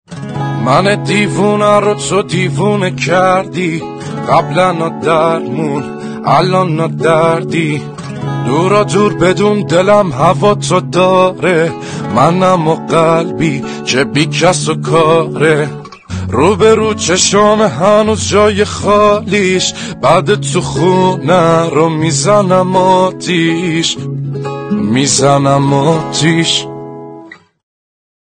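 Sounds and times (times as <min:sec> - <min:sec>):
guitar: 0:00.1 - 0:27.6.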